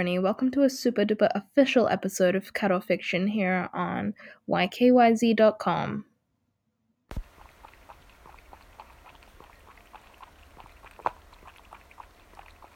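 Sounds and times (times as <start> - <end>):
speech: 0.0 - 6.1, 7.1 - 7.3
cat lapping water from a glass: 7.1 - 12.7.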